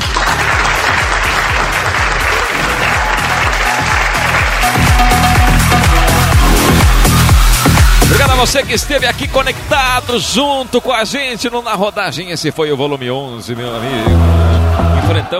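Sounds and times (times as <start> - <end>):
audience applause: 0.0 - 8.2
speech: 8.4 - 15.3.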